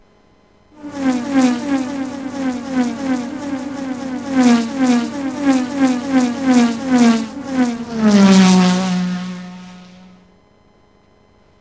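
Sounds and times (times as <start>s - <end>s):
racing cars: 0.8s - 10.2s.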